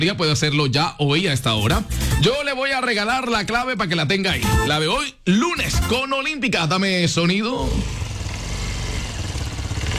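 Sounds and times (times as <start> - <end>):
speech: 0.0 - 8.0
vehicle engine revving and shifting into second gear: 7.6 - 9.9.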